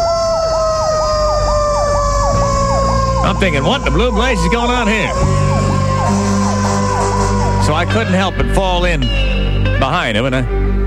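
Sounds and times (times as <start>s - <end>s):
rescue vehicle sirens: 0.0s - 8.8s
rescue vehicles roaring past: 0.0s - 9.7s
speech: 3.3s - 5.7s, 7.7s - 10.8s.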